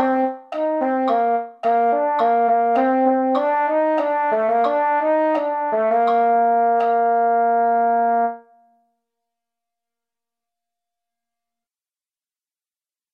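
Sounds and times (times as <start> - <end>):
mellophone: 0.0 - 8.8.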